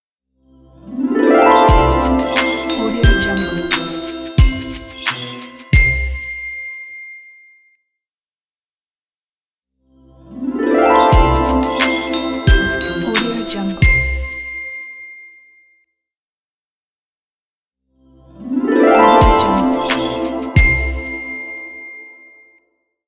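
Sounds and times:
Christmas ident jingle: 0.6 - 6.6, 10.0 - 14.8, 18.1 - 22.6.

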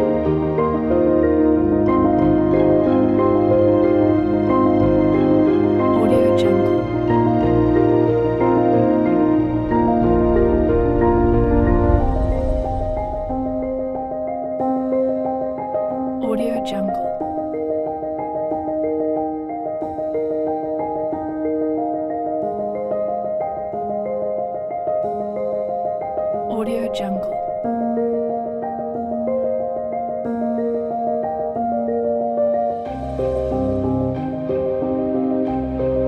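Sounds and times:
piano: 0.0 - 36.0.

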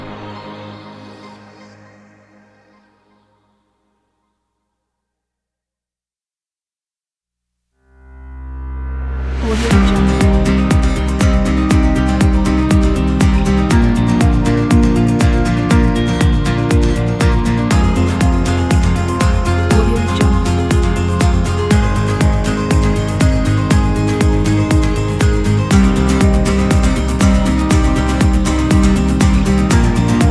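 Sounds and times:
cinematic rock music: 9.2 - 30.2.

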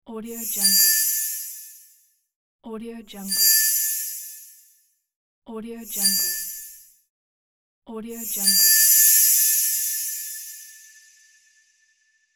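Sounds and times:
diamond sparkle chime: 0.4 - 1.9, 3.2 - 4.7, 5.9 - 6.9, 8.3 - 12.0.

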